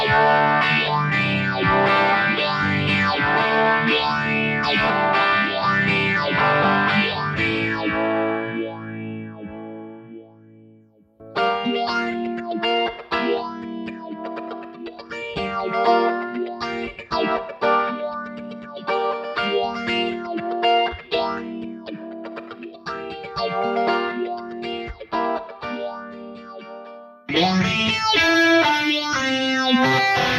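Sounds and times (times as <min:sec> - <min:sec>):
guitars through a phaser effect: 0:00.0 - 0:30.3.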